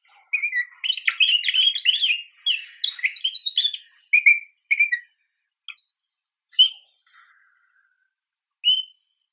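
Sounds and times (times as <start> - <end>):
pine grosbeak Pinicola enucleator calling: 0.0 - 5.8, 6.5 - 7.8, 8.6 - 8.9.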